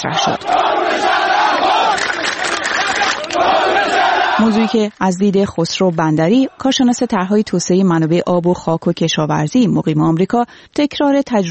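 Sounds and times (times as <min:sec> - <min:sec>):
speech: 0:00.0 - 0:02.1, 0:03.4 - 0:11.4
protest crowd chanting slogans in unison: 0:00.0 - 0:05.0, 0:05.6 - 0:07.3.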